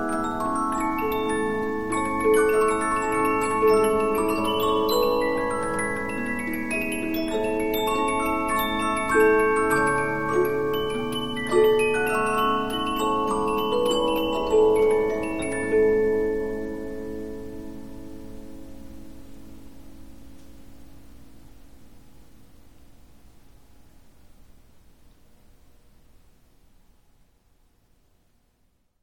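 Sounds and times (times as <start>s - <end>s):
Polyphon 15-inch disc music box playing: 0.0s - 18.0s.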